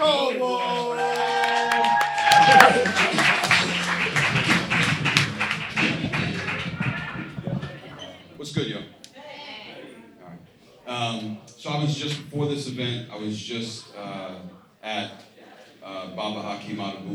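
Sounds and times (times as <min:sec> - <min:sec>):
laughter: 0:00.1 - 0:14.6
audience clapping: 0:00.2 - 0:09.2
whoops and cheers: 0:00.6 - 0:04.6
speech: 0:16.2 - 0:17.1.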